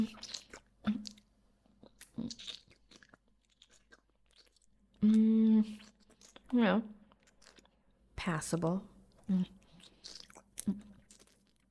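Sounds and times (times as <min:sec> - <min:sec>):
speech: 0:00.0 - 0:00.4, 0:05.0 - 0:05.8, 0:06.5 - 0:07.0, 0:08.2 - 0:09.6
person chewing food while tasting it: 0:00.0 - 0:08.0, 0:09.0 - 0:11.6.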